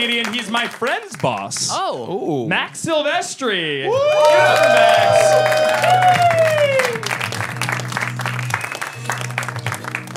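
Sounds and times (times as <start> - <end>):
audience applause: 0.0 - 1.6, 3.9 - 10.1
speech: 0.0 - 6.8.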